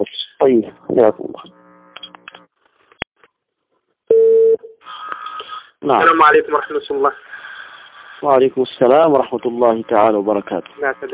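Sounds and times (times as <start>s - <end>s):
speech: 0.5s - 1.3s, 5.9s - 7.3s, 8.2s - 11.1s
telephone dial tone during redialing: 4.1s - 4.7s.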